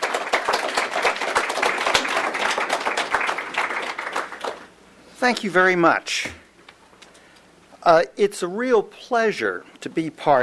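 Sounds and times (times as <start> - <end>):
audience applause: 0.0 - 4.7
speech: 5.2 - 6.4, 7.9 - 10.4.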